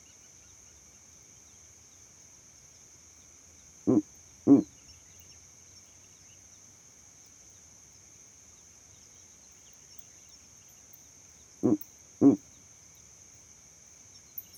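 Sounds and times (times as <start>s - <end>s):
owl hooting at night: 3.9s - 4.7s, 11.6s - 12.4s.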